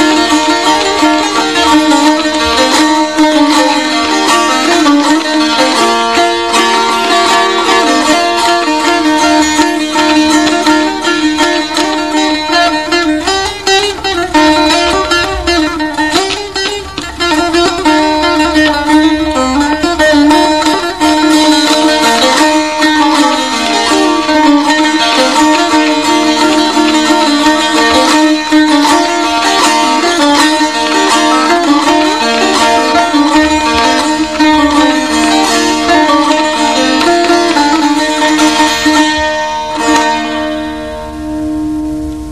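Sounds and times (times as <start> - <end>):
saz playing: 0.0 - 42.3.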